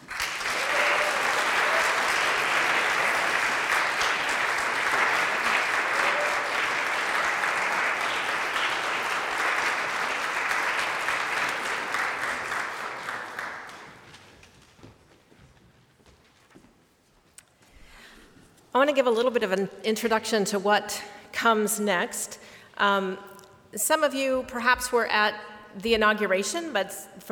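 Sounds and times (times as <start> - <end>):
audience applause: 0.0 - 14.2
speech: 18.9 - 27.3.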